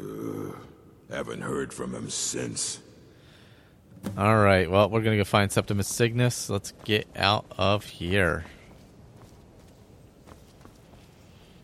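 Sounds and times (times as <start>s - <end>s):
speech: 1.2s - 2.9s, 4.0s - 8.6s
footsteps descending stone steps at the Mages College in Skyrim: 5.6s - 11.6s.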